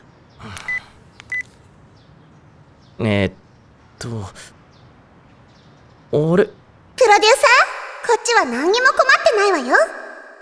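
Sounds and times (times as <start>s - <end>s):
phone email notification beeps: 0.7s - 1.5s
speech: 3.0s - 3.4s, 4.0s - 4.6s, 6.1s - 7.6s, 8.2s - 10.0s.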